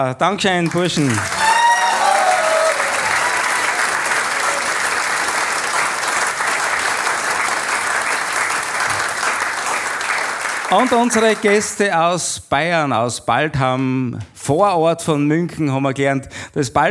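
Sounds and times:
speech: 0.0 - 1.4, 10.7 - 16.8
audience clapping: 0.0 - 11.9
whistles and cheers: 1.2 - 5.4.

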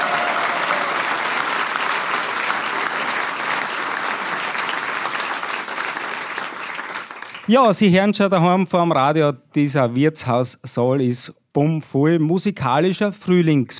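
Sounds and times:
audience applause: 0.0 - 7.6
speech: 7.5 - 13.7.

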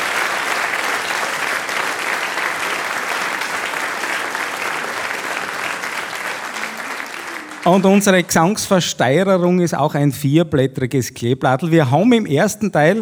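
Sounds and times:
audience applause: 0.0 - 8.9
speech: 7.6 - 13.0.

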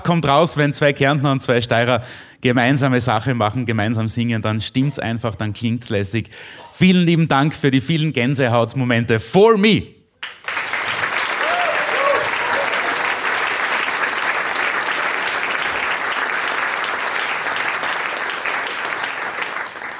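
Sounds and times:
speech: 0.0 - 10.0
audience applause: 10.2 - 19.9
whoops and cheers: 11.2 - 13.2.

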